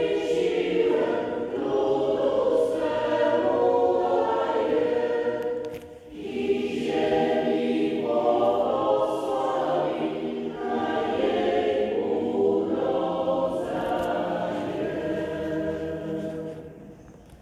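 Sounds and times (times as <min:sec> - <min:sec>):
parish choir singing: 0:00.0 - 0:17.2.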